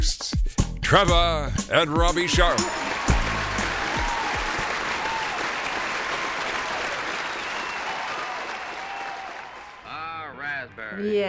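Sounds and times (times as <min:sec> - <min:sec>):
speech: 0:00.0 - 0:03.0, 0:11.0 - 0:11.2
audience applause: 0:02.2 - 0:10.5.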